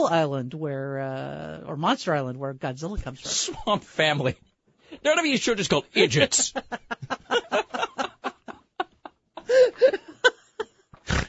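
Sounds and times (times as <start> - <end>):
speech: 0.0 - 7.2
person giggling and chuckling: 6.6 - 11.2
person's harsh nasal snort: 11.0 - 11.2.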